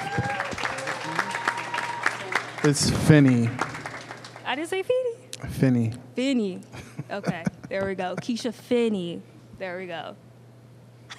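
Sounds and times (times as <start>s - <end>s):
audience applause: 0.0s - 4.5s
speech: 2.6s - 3.7s, 4.7s - 10.2s.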